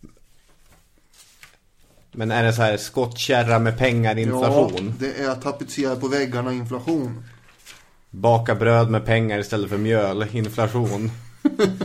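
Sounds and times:
book pages flipping: 0.0 - 2.2, 3.0 - 5.2, 5.8 - 8.0, 10.2 - 11.0
speech: 2.2 - 7.4, 8.1 - 11.8.

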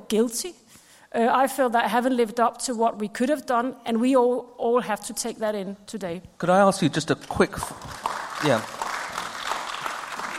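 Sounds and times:
speech: 0.1 - 8.8
audience applause: 7.6 - 10.3.

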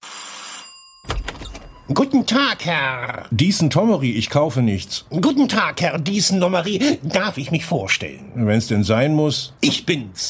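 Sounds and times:
doorbell ringing: 0.0 - 2.7
speech: 1.9 - 10.2.

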